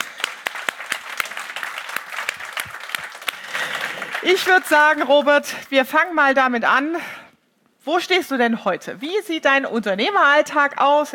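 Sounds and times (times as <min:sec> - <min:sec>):
thunderous applause: 0:00.0 - 0:04.5
speech: 0:04.2 - 0:07.2, 0:07.8 - 0:11.1.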